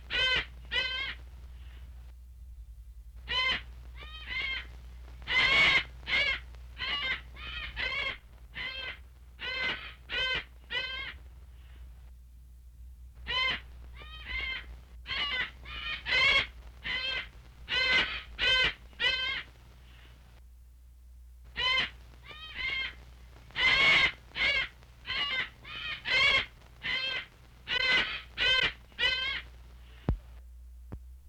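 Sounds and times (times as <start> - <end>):
bird giving harsh nasal caws: 0.1 - 1.2, 3.3 - 4.7, 5.3 - 11.2, 13.3 - 19.5, 21.6 - 23.0, 23.6 - 29.5.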